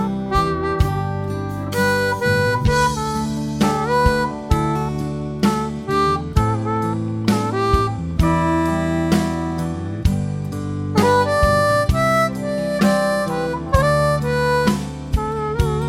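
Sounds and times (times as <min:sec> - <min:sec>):
harp: 0:00.0 - 0:15.8.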